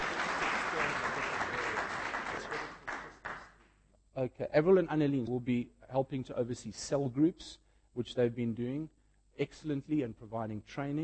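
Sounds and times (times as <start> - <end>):
audience clapping: 0.0 - 3.6
speech: 4.2 - 11.0.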